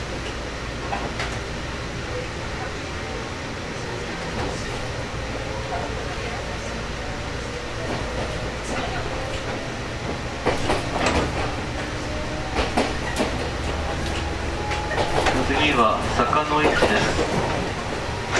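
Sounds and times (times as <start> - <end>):
JR Kyushu 415 series local train on the Nippō Line rumbling: 0.0 - 18.3
voices: 1.4 - 18.3
train clacks and rattles: 7.8 - 18.3.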